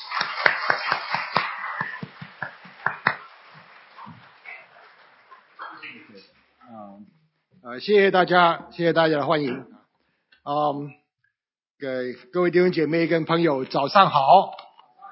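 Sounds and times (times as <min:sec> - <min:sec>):
audience applause: 0:00.0 - 0:06.5
speech: 0:07.0 - 0:09.7, 0:10.4 - 0:11.0, 0:11.8 - 0:14.6.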